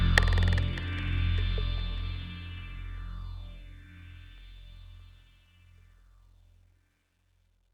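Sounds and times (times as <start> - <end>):
percussion one-shot: 0.1 - 2.2.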